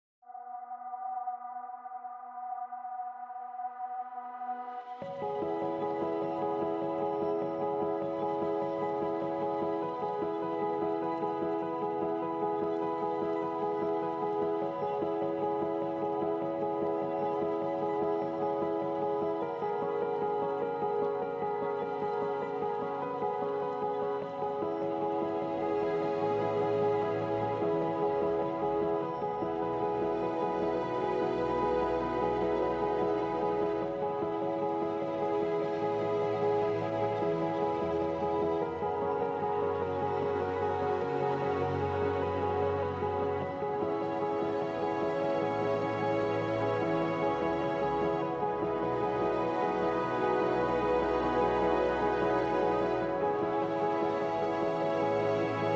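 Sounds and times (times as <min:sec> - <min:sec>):
ambient music: 0:00.2 - 0:55.7.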